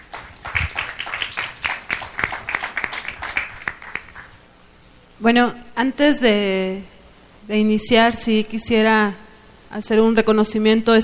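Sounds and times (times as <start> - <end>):
audience clapping at a public forum: 0.0 - 4.4
speech: 5.2 - 6.9, 7.5 - 11.0.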